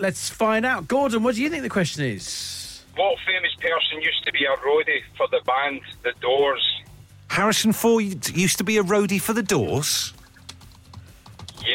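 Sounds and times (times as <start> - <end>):
speech: 0.0 - 6.7, 7.3 - 10.2
typing on a computer keyboard: 10.4 - 11.7.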